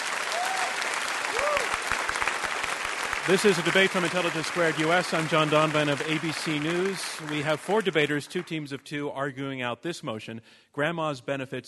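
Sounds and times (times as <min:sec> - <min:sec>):
crowd clapping: 0:00.0 - 0:08.8
speech: 0:03.2 - 0:11.6.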